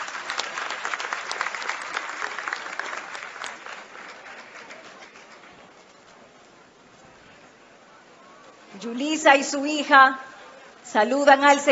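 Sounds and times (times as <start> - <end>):
audience applause: 0.0 - 5.9
speech: 8.8 - 10.2, 10.9 - 11.7.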